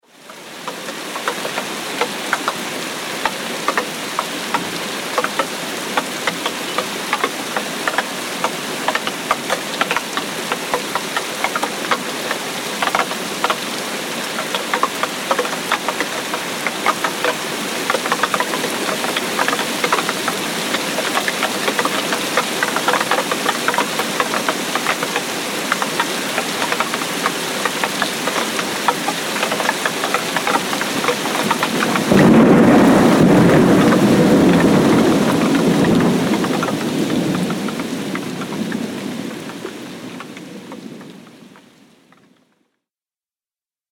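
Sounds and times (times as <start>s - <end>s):
tropical rain storm: 0.0s - 42.7s
thunder: 31.5s - 39.4s.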